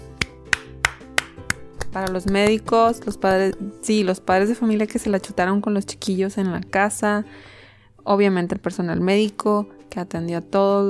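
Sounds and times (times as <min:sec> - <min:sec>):
single person clapping: 0:00.2 - 0:02.6
speech: 0:02.0 - 0:10.8.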